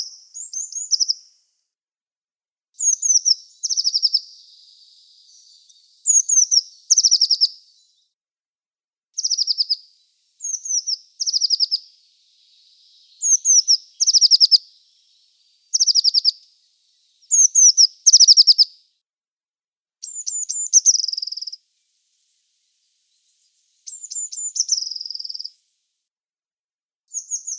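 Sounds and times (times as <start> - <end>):
Eurasian blue tit calling: 0.0 - 1.3, 2.8 - 8.0, 9.2 - 18.8, 20.0 - 21.6, 23.9 - 25.6, 27.1 - 27.5.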